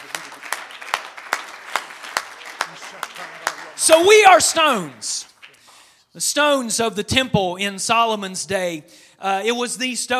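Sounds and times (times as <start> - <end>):
crowd audience clapping hands: 0.0 - 5.9
speech: 2.9 - 5.3, 6.2 - 10.1.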